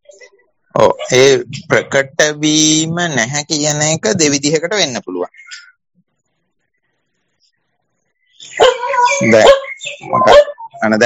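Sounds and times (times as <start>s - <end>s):
speech: 0.7s - 5.7s, 8.5s - 11.0s
dog barking: 8.5s - 10.7s.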